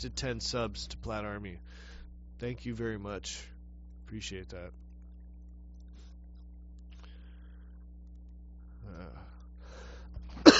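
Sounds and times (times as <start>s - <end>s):
speech: 0.0s - 3.5s, 4.1s - 4.8s
faint low hum: 0.0s - 10.5s
throat clearing with a cough: 10.4s - 10.5s.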